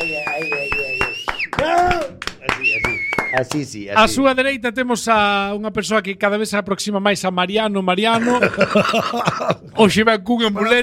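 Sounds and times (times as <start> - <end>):
audience applause: 0.0 - 3.8
speech: 3.3 - 10.8
laughter: 8.1 - 9.8.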